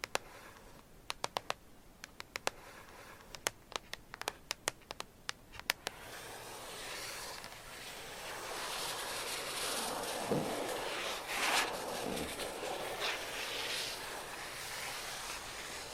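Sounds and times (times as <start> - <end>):
gentle tapping: 0.0 - 6.0
gentle scratching: 0.0 - 15.9.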